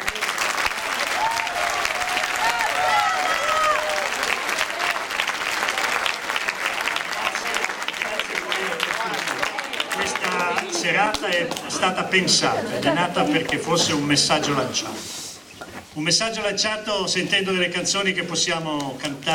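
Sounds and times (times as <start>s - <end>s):
audience applause: 0.0s - 11.8s
speech: 11.2s - 15.1s, 16.0s - 19.3s.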